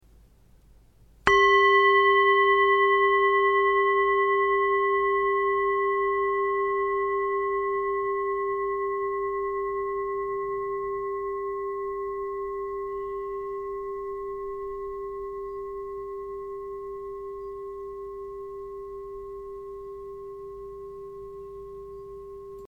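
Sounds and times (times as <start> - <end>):
singing bowl: 1.2 - 22.6.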